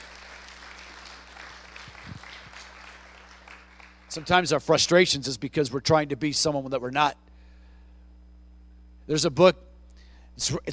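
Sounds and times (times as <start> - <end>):
crowd clapping: 0.0 - 4.6
low hum: 0.0 - 10.7
speech: 4.2 - 7.2, 9.1 - 9.6, 10.4 - 10.7.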